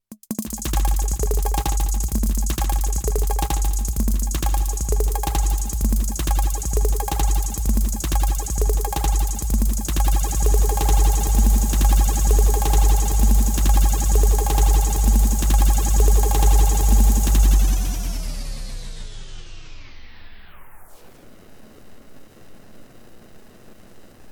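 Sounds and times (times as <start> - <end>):
Erica Synths Black Hole DSP2 chirp delay: 0.6 - 18.2.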